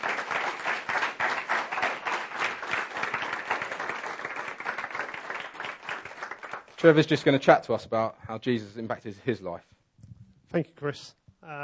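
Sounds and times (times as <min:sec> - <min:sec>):
audience applause: 0:00.0 - 0:07.0
speech: 0:06.8 - 0:09.7, 0:10.5 - 0:11.6.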